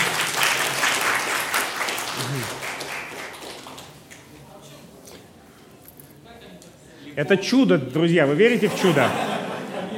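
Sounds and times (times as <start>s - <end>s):
audience applause: 0.0s - 4.0s
speech: 7.2s - 9.3s
laughter: 8.5s - 9.9s.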